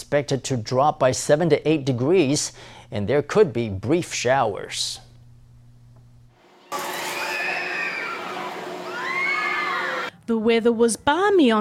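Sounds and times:
speech: 0.1 - 5.0, 10.3 - 11.5
children playing at Taipei Children's Amusement Park: 6.8 - 10.1.

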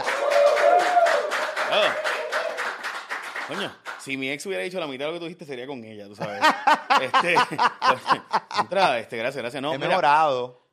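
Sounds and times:
audience applause: 0.0 - 4.1
speech: 3.5 - 10.6
laughter: 6.2 - 9.0.

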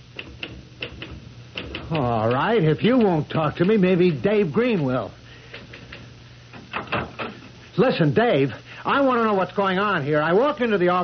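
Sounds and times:
typing on a typewriter: 0.2 - 3.8
speech: 1.9 - 5.2, 7.8 - 11.0.

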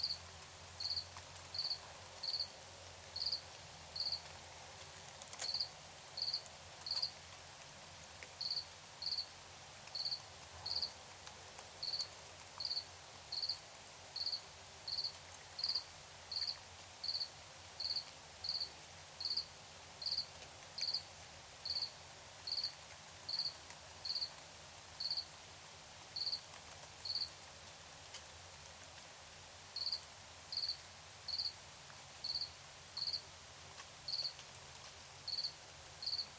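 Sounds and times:
background hiss: 0.0 - 36.3
cricket chirping: 0.8 - 2.5, 3.2 - 3.4, 4.0 - 4.2, 5.4 - 7.1, 8.4 - 9.3, 10.0 - 10.9, 11.8 - 13.6, 14.2 - 20.2, 20.8 - 21.0, 21.6 - 21.9, 22.5 - 22.7, 23.3 - 24.3, 25.0 - 25.2, 26.2 - 26.4, 27.0 - 27.3, 29.8 - 31.6, 32.2 - 33.2, 34.1 - 34.4, 35.3 - 36.3.

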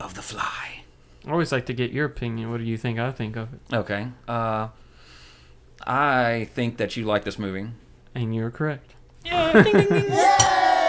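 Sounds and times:
speech: 0.3 - 4.8, 5.8 - 10.6
laughter: 9.3 - 10.8
bell being tapped: 10.4 - 10.7.

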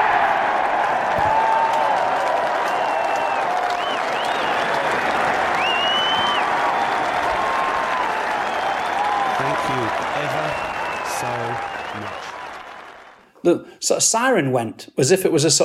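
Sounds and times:
crowd clapping and cheering after a holed putt: 0.0 - 13.3
shrill whistles: 2.6 - 13.3
speech: 13.5 - 15.6.

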